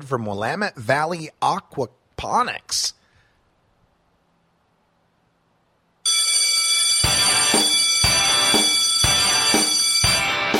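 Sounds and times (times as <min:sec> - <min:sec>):
speech: 0:00.0 - 0:03.0
bell ringing: 0:06.1 - 0:10.5.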